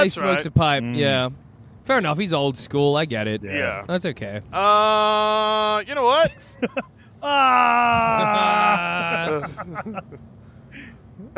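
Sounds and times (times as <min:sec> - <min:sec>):
speech: 0:00.0 - 0:10.3
laughter: 0:06.1 - 0:10.2
person screaming: 0:07.2 - 0:09.4.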